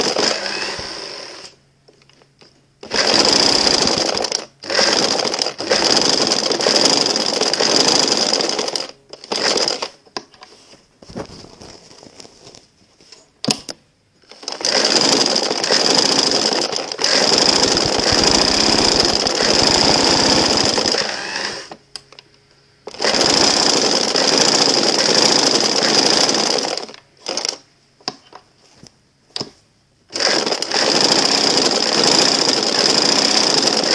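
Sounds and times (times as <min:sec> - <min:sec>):
sewing machine: 0:00.0 - 0:01.6, 0:02.8 - 0:10.0, 0:14.2 - 0:21.8, 0:22.9 - 0:27.7, 0:30.1 - 0:33.9.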